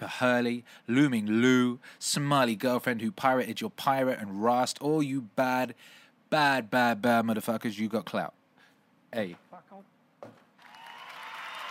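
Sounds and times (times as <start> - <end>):
speech: 0.0 - 8.4, 9.1 - 10.4
applause: 10.6 - 11.7.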